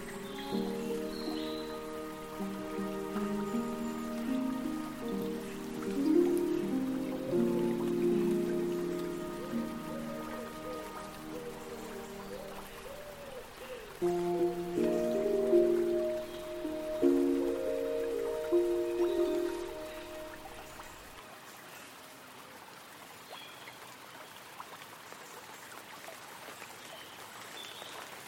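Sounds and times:
relaxing fantasy harp music: 0.0 - 21.2
light raindrops on trees: 0.0 - 28.2.

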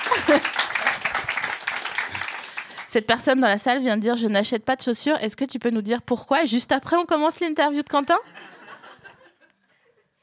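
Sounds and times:
laughter: 0.0 - 1.4, 8.2 - 10.1
audience applause: 0.0 - 2.9
speech: 0.2 - 0.7, 2.9 - 8.5.

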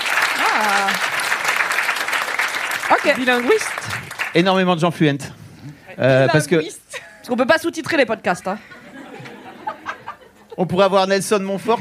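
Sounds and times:
audience applause: 0.0 - 4.6
speech: 0.6 - 1.2, 2.9 - 8.8, 10.6 - 11.7
laughter: 8.5 - 10.9.

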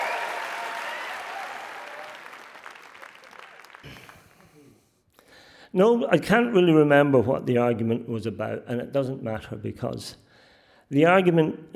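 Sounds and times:
round of applause: 0.0 - 4.8
speech: 5.7 - 10.2, 10.9 - 11.7.

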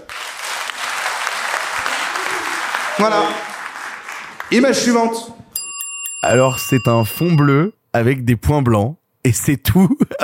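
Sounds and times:
audience applauding: 0.0 - 5.1
speech: 3.0 - 3.5, 4.5 - 5.4, 6.3 - 10.2.

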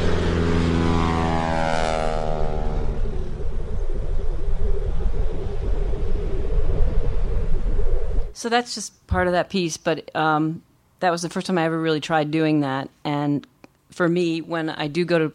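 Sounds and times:
airplane engine: 0.0 - 8.4
speech: 8.4 - 15.3.

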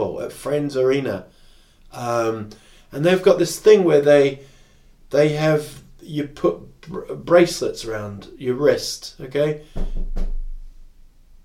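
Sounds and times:
speech: 0.2 - 4.5, 5.1 - 10.3
knock on an office door: 9.8 - 10.6.

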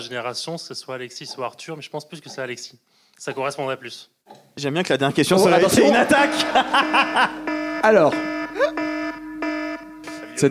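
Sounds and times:
speech: 0.0 - 8.8
laughter: 5.3 - 7.5
buzzy electronic quiz buzzer: 5.6 - 10.4.

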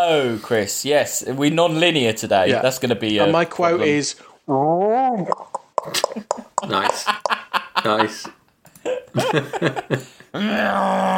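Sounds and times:
speech: 0.0 - 7.2, 7.8 - 11.1
laughter: 5.8 - 10.2
alien heptapod vocalizations with elephant-like quality: 10.3 - 11.1.

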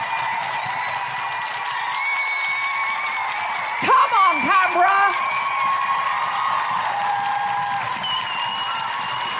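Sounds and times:
large crowd clapping and cheering: 0.0 - 9.3
person shouting excitedly: 3.8 - 5.2.

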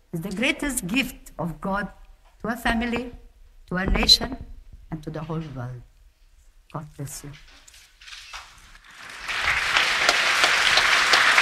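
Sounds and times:
speech: 0.1 - 5.9, 6.7 - 7.6
audience applauding loudly: 8.5 - 11.4.

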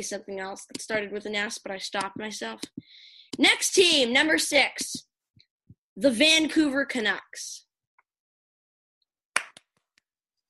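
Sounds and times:
speech: 0.0 - 5.1, 6.0 - 7.6
hand clapping: 9.3 - 9.8.

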